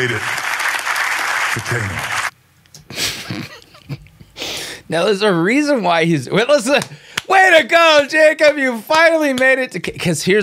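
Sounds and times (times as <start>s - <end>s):
speech: 0.0s - 0.4s, 1.5s - 2.2s, 4.9s - 10.4s
audience clapping: 0.0s - 2.3s
laughter: 2.9s - 4.3s.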